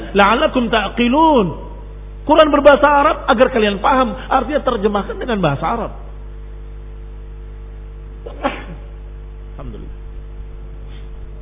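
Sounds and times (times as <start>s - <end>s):
low hum: 0.0s - 11.3s
speech: 0.1s - 1.6s, 2.3s - 6.0s, 8.3s - 8.6s
sneeze: 8.2s - 9.0s.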